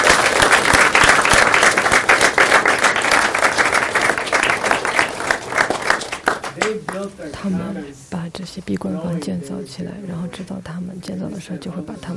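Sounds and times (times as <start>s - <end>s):
audience applause: 0.0s - 7.0s
speech: 7.4s - 12.1s.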